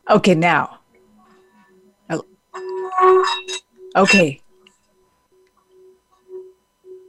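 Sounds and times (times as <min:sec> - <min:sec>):
speech: 0:00.1 - 0:00.8, 0:02.1 - 0:02.3, 0:03.0 - 0:04.4
Tibetan singing bowl ringing: 0:02.5 - 0:05.0, 0:05.6 - 0:07.0.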